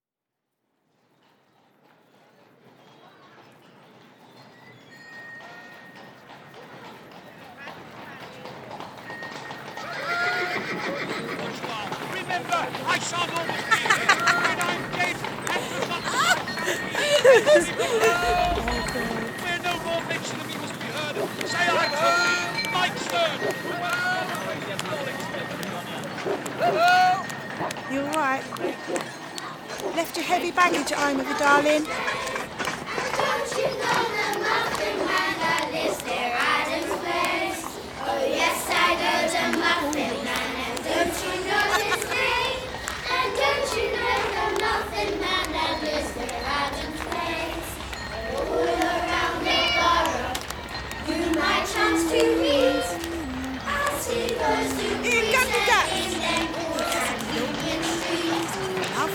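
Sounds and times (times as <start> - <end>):
laughter: 9.8 - 59.1
soundscape: 12.7 - 29.9, 38.6 - 59.1.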